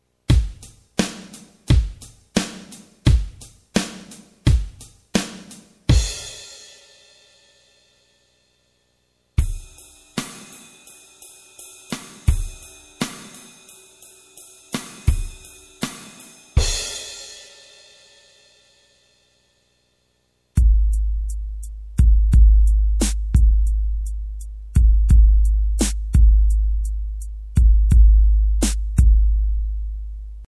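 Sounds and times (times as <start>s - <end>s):
drums: 0.0s - 8.0s, 9.3s - 19.5s, 20.5s - 30.4s.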